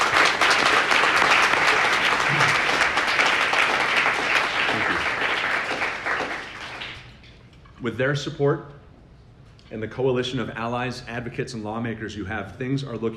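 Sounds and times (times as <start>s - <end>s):
crowd applauding: 0.0s - 7.3s
speech: 7.8s - 8.8s, 9.7s - 13.1s.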